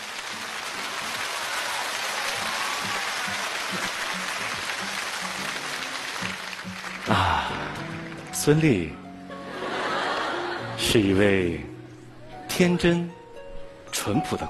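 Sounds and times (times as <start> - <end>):
audience applause: 0.0 - 8.4, 9.6 - 10.7
speech: 8.4 - 9.0, 10.9 - 11.7, 12.6 - 13.2, 14.0 - 14.4
laughter: 9.4 - 11.2.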